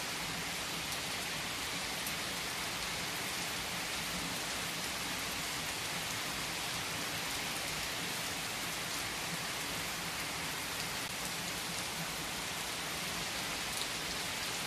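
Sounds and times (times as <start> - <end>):
heavy rain on trees: 0.0 - 14.6.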